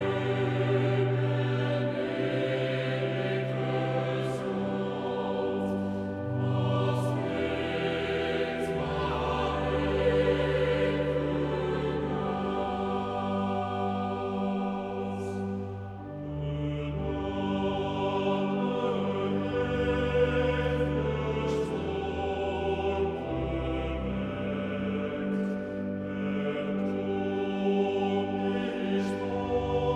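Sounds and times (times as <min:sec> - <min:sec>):
mixed choir singing: 0:00.0 - 0:29.9.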